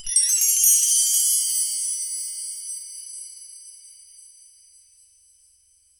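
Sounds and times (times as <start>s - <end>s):
short bright synthesized sparkles: 0.0s - 4.7s.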